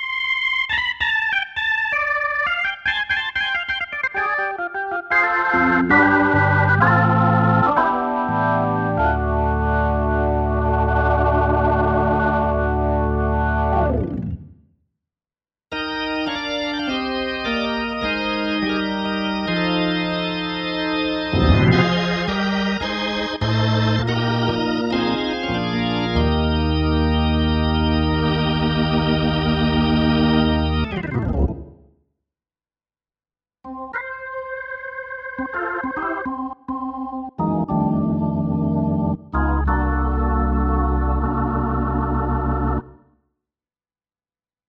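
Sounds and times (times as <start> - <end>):
organ: 0.1 - 14.4, 15.7 - 31.7, 33.7 - 43.0.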